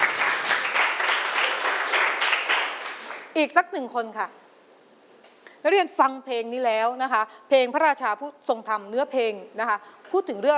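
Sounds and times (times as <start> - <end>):
students clapping for a classmate: 0.0 - 3.3
speech: 3.4 - 4.4, 5.6 - 10.5.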